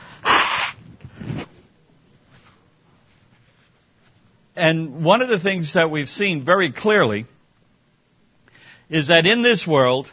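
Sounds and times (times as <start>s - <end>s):
person blowing nose: 0.2s - 1.5s
speech: 4.6s - 7.3s, 8.9s - 10.1s.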